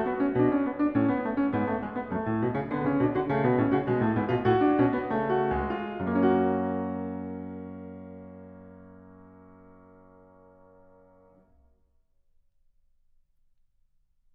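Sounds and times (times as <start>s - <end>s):
classical prelude in F-sharp minor: 0.0s - 11.4s.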